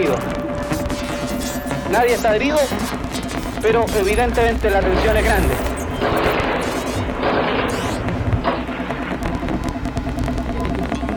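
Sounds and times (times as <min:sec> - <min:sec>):
gunfire during an armed attack on bank and social security buildings: 0:00.0 - 0:10.6
speech: 0:01.9 - 0:03.0, 0:03.6 - 0:06.3.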